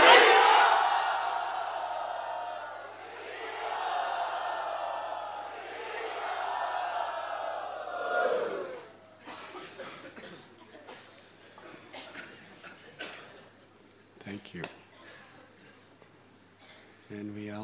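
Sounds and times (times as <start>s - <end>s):
devotees cheering in welcome at Radha Gopinath Temple: 0.0s - 9.1s.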